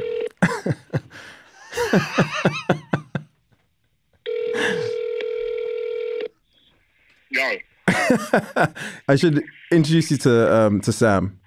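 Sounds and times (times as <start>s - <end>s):
telephone dialing tone: 0.0s - 0.3s, 4.3s - 6.3s
chuckling laughter: 0.4s - 3.4s, 7.9s - 8.8s
speech: 1.9s - 2.6s, 8.6s - 11.4s.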